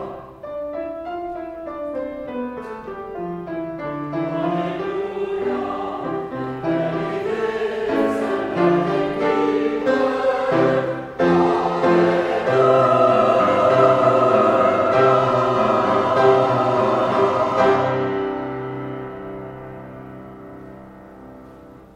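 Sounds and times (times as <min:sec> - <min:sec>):
choir singing: 0:00.0 - 0:00.6, 0:03.9 - 0:19.3.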